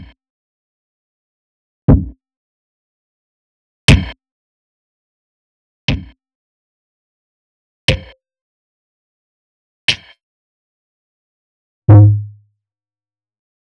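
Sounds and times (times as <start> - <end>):
Alesis Performance Pad kicks: 1.9 - 2.1, 11.9 - 12.4.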